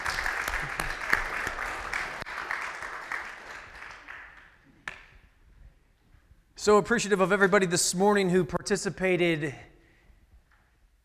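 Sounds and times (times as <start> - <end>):
audience applause: 0.0 - 4.6
speech: 6.6 - 9.7.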